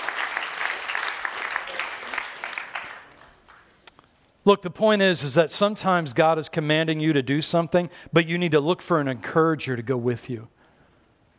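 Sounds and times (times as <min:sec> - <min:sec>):
audience applause: 0:00.0 - 0:03.6
speech: 0:04.5 - 0:10.6.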